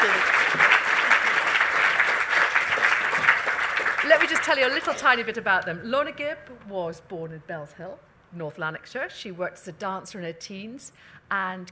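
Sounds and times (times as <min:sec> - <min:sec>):
audience applause: 0:00.0 - 0:05.0
speech: 0:04.5 - 0:11.7.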